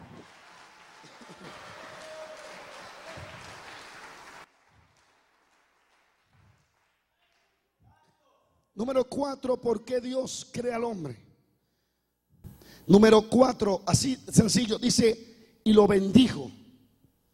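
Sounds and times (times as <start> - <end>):
audience applause: 0.0 - 7.0
speech: 8.8 - 11.3, 12.9 - 16.6.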